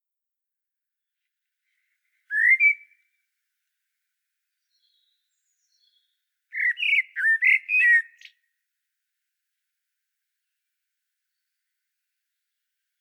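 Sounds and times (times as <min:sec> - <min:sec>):
common blackbird whistling: 0:02.3 - 0:03.0, 0:06.6 - 0:08.3.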